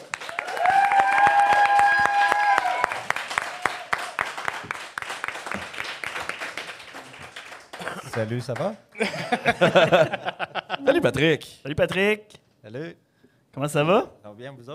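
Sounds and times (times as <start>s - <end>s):
audience applause and cheering greeting a guest on a French-language talk show: 0.0s - 8.2s
speech: 8.2s - 13.0s, 13.6s - 14.7s
laughter: 9.0s - 11.0s.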